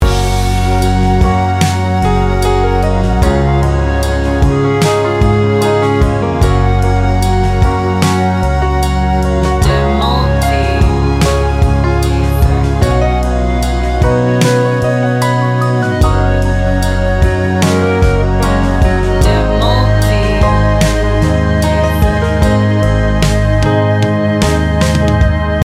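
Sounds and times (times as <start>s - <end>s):
instrumental ballad: 0.0s - 25.6s.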